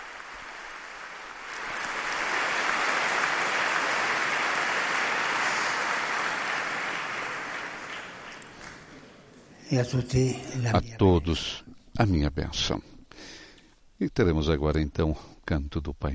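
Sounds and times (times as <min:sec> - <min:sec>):
crowd applauding: 0:00.0 - 0:09.3
speech: 0:09.7 - 0:13.4, 0:14.0 - 0:16.1.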